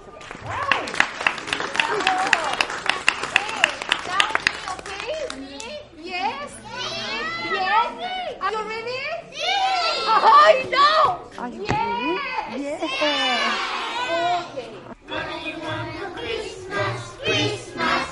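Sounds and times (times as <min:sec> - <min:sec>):
children clapping: 0:00.1 - 0:05.4
children shouting and chattering: 0:04.9 - 0:18.1.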